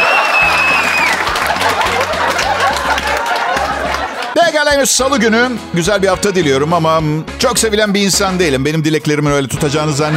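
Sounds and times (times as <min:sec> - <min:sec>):
crowd applause: 0:00.0 - 0:04.5
scattered laughter and chatter: 0:01.2 - 0:04.4
speech: 0:04.6 - 0:10.1.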